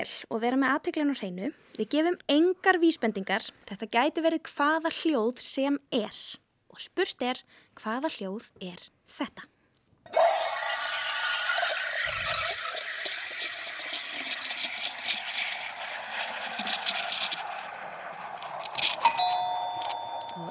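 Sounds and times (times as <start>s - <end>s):
speech: 0.0s - 9.5s
milk frothing for cappuccino: 10.1s - 20.4s.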